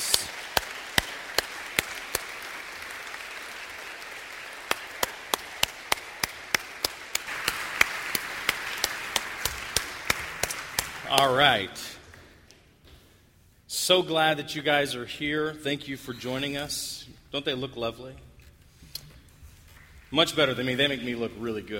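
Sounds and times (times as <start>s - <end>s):
audience clapping welcoming four mothers onto a stage: 0.0s - 12.6s, 19.7s - 21.0s
low hiss: 0.0s - 21.7s
speech: 11.1s - 12.0s, 13.9s - 18.3s, 20.1s - 21.7s.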